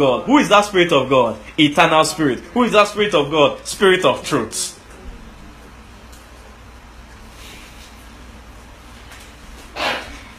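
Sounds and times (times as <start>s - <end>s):
speech: 0.0s - 4.8s
person sneezing: 9.7s - 10.3s.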